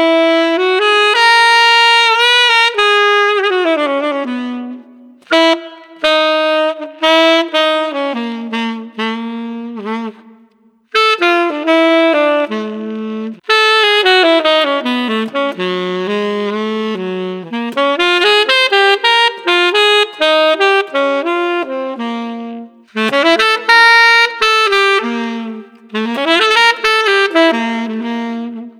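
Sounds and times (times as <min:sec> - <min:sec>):
street saxophone: 0:00.0 - 0:28.7.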